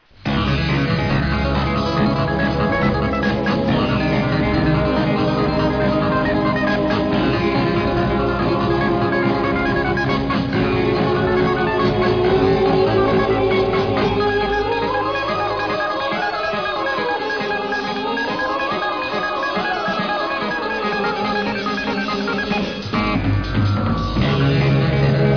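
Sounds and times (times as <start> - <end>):
melody: 0.4 - 25.3.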